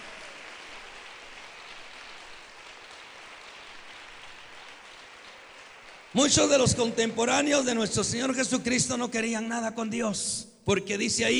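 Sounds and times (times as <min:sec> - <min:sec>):
crowd clapping: 0:00.0 - 0:08.5
speech: 0:06.2 - 0:11.3.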